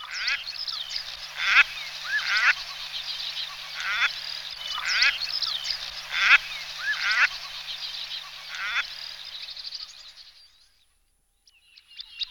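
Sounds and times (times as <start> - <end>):
common shelduck whistling: 0.0 - 9.0.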